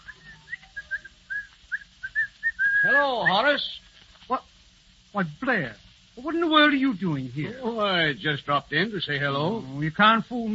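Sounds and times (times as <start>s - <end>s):
man whistling cheerfully while coming down the stairs: 0.0s - 3.4s
speech: 2.9s - 4.4s, 5.2s - 10.5s.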